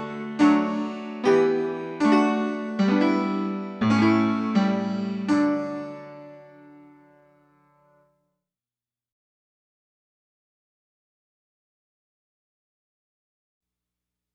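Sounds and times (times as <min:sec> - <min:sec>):
music: 0:00.0 - 0:08.4.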